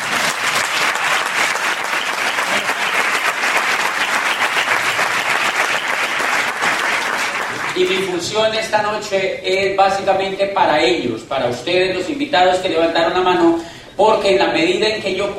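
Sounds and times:
loud audience applause: 0.0 - 8.1
speech: 7.8 - 15.3.

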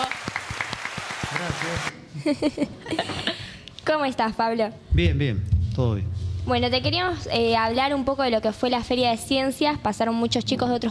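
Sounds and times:
applause for guest: 0.0 - 1.9
speech: 1.4 - 3.2, 3.9 - 10.8
laughter: 2.0 - 3.6.

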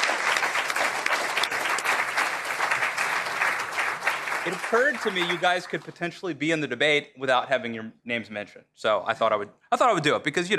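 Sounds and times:
audience applause: 0.0 - 6.0
speech: 4.4 - 10.5.

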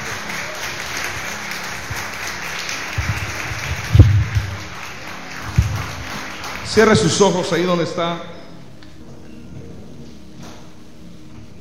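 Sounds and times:
audience applauding: 0.0 - 8.0
speech: 6.8 - 8.4.

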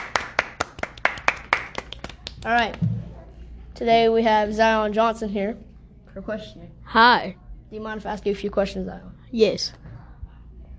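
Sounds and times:
single person clapping: 0.0 - 2.8
speech: 2.4 - 2.9, 3.8 - 9.8.

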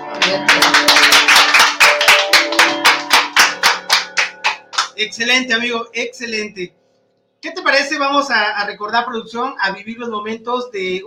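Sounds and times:
rhythmic clapping: 0.0 - 5.5
speech: 0.3 - 1.2, 5.0 - 6.8, 7.4 - 11.0.

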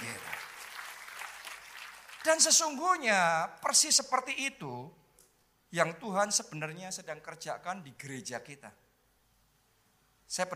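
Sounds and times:
applause: 0.0 - 2.6
speech: 2.2 - 5.0, 5.7 - 8.8, 10.3 - 10.5.

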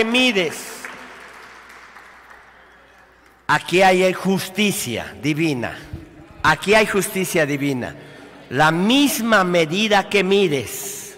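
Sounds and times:
speech: 0.0 - 0.7, 3.5 - 11.0
audience applause: 0.8 - 3.4.

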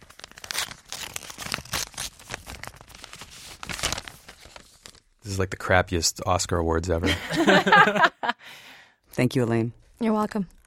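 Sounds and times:
paper envelope torn open by hand at a mock awards ceremony: 0.0 - 5.1
speech: 5.3 - 10.6
laughter: 7.0 - 8.4.

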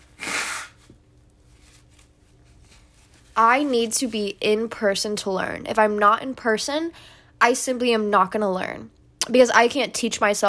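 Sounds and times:
nose blowing: 0.0 - 0.9
speech: 3.4 - 10.4.

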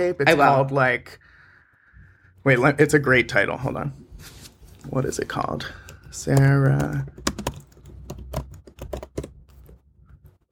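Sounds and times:
speech: 0.0 - 1.2, 2.4 - 7.2
typing a search on a computer keyboard: 5.7 - 10.4.

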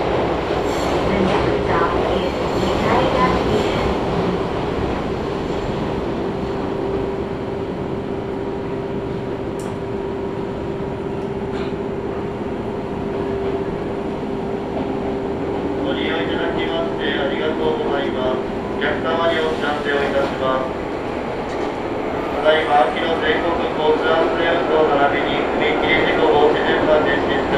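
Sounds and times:
Izu-Hakone Railway Daiyuzan Line train running: 0.0 - 27.5
voices: 1.0 - 4.1, 15.7 - 20.9, 22.2 - 27.5.

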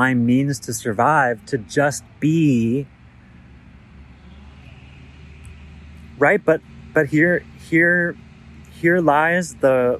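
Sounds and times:
speech: 0.0 - 3.0, 6.2 - 8.2, 8.8 - 9.9
truck engine rumble: 0.0 - 9.9.

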